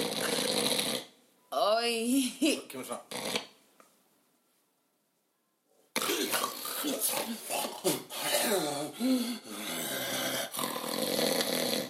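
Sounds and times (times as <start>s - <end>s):
voice imitating snoring of a sleeping person: 0.0s - 1.1s, 3.1s - 3.5s, 6.0s - 11.8s
speech: 1.8s - 3.4s.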